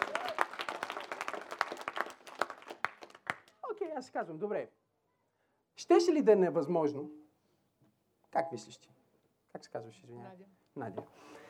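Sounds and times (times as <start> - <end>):
audience applause: 0.0 - 3.6
speech: 4.0 - 4.8, 5.8 - 7.2, 8.4 - 8.9, 9.5 - 11.4.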